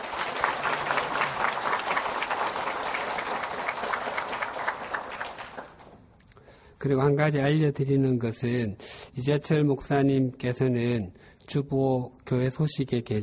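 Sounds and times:
audience applauding: 0.0s - 6.0s
speech: 6.8s - 13.2s.

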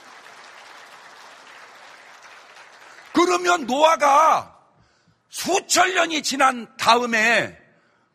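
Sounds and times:
audience applause: 0.0s - 3.6s
speech: 3.3s - 4.5s, 5.3s - 7.6s.

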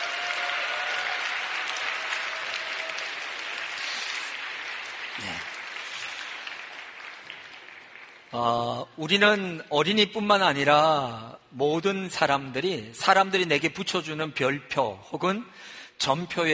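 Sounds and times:
audience applause: 0.0s - 8.4s
speech: 5.2s - 5.5s, 8.3s - 16.5s.

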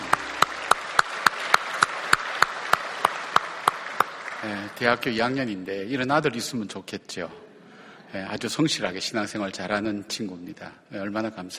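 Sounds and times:
audience applauding: 0.0s - 5.0s
speech: 4.4s - 7.4s, 8.1s - 11.5s.

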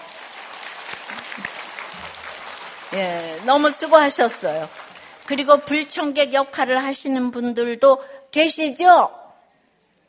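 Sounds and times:
church congregation clapping: 0.0s - 6.2s
speech: 2.9s - 9.2s.

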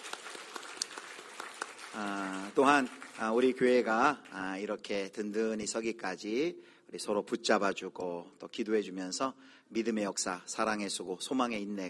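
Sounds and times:
church congregation applause: 0.0s - 4.8s
speech: 2.0s - 11.8s.

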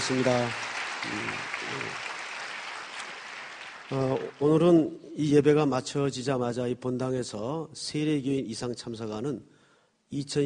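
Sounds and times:
audience applauding: 0.0s - 4.8s
speech: 0.1s - 2.1s, 3.9s - 9.5s, 10.1s - 10.4s.

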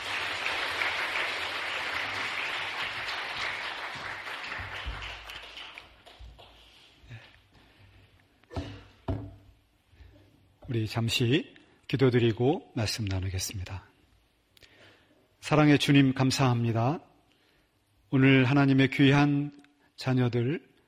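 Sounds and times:
audience applause: 0.0s - 6.7s
speech: 10.7s - 13.9s, 15.4s - 17.1s, 18.1s - 20.7s.

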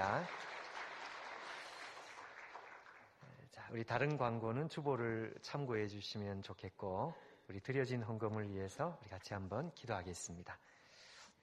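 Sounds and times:
speech: 0.0s - 0.5s, 3.7s - 10.8s
faint applause from a church congregation during a service: 0.0s - 3.3s.

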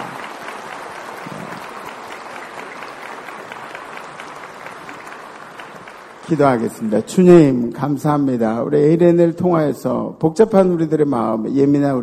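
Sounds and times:
audience applause: 0.0s - 7.3s
speech: 6.3s - 12.0s.

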